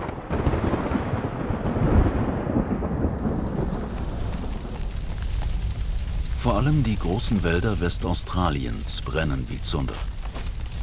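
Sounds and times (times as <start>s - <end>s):
rolling thunder in tropical thunderstorm: 0.0s - 7.3s
steady heavy rain: 0.0s - 10.8s
speech: 6.6s - 10.1s.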